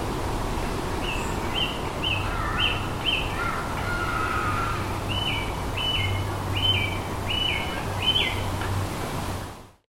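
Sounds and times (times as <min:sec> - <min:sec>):
wind rustling in the trees in Midgery wood: 0:00.0 - 0:09.8
birdsong in Midgery wood: 0:01.0 - 0:08.5.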